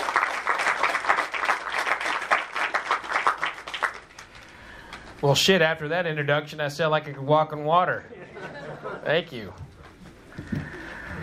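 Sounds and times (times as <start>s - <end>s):
crowd applause welcoming a speaker: 0.0s - 5.0s
speech: 5.2s - 8.2s, 9.0s - 9.7s
laughter: 8.0s - 9.6s.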